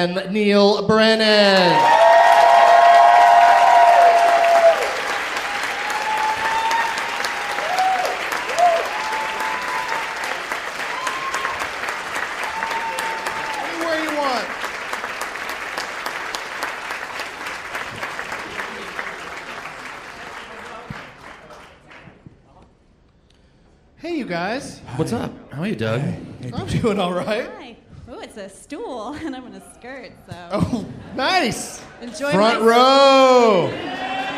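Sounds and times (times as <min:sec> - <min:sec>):
speech: 0:00.0 - 0:02.0, 0:25.8 - 0:27.8, 0:28.4 - 0:33.9
audience whoops and shouted voices: 0:01.6 - 0:11.7, 0:12.4 - 0:13.8
Baltimore comedy show audience applause welcoming comedians: 0:01.6 - 0:22.2, 0:32.3 - 0:34.3.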